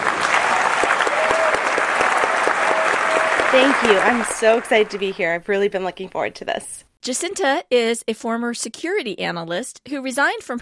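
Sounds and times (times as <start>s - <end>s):
audience applause welcoming a new co-host: 0.0s - 5.2s
speech: 3.6s - 10.6s.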